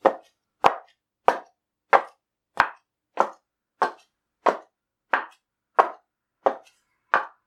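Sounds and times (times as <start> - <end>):
geta wooden clogs walking: 2.0 - 7.4.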